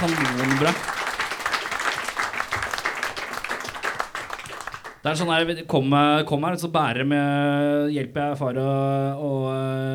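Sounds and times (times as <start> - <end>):
speech: 0.0 - 1.0, 5.0 - 9.9
applause: 0.0 - 5.2.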